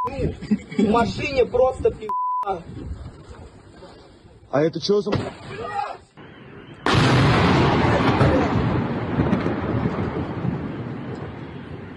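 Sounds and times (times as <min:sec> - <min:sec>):
speech: 0:00.0 - 0:03.1, 0:04.5 - 0:06.0
laughter: 0:00.1 - 0:01.3
drone explosion hitting a house: 0:06.2 - 0:11.9.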